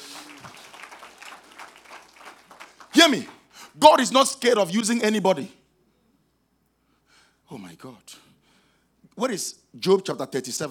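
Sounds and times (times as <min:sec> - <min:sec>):
audience clapping: 0:00.0 - 0:03.5
speech: 0:03.0 - 0:05.6, 0:09.2 - 0:10.6.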